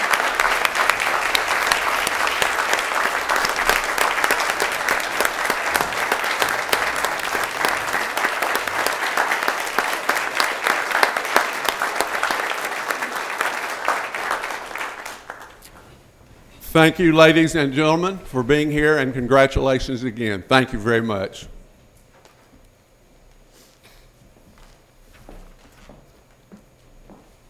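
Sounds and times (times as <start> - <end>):
audience round of applause: 0.0 - 15.9
speech: 16.8 - 21.5.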